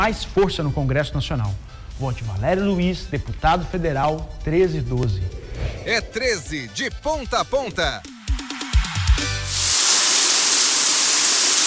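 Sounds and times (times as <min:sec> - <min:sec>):
speech: 0:00.0 - 0:08.1
shower running: 0:08.2 - 0:11.6.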